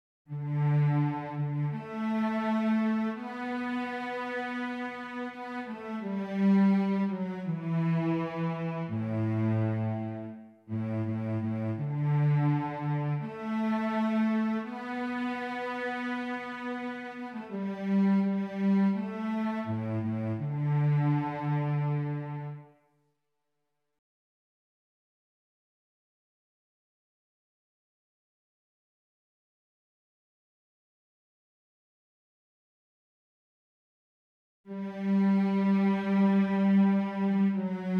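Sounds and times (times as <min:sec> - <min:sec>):
cello: 0:00.3 - 0:22.8, 0:34.7 - 0:37.9.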